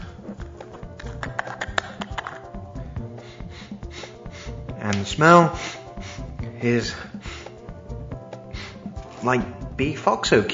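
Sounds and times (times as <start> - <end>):
lid of a Bovril jar being peeled off and opened: 0.7 - 2.6
speech: 4.9 - 5.8, 6.6 - 7.0, 9.2 - 10.5.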